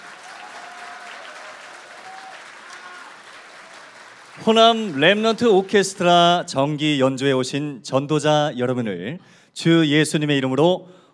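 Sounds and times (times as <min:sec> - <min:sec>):
audience applause after brass quintet: 0:00.0 - 0:06.4
speech: 0:04.4 - 0:11.0.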